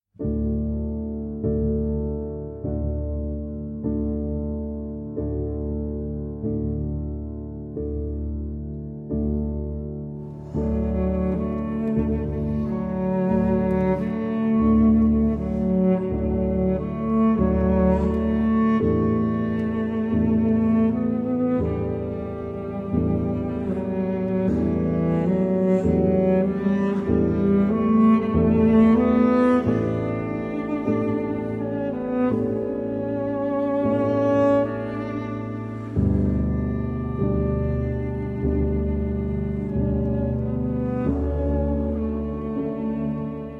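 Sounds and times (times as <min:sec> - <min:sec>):
piano: 0:00.1 - 0:43.5.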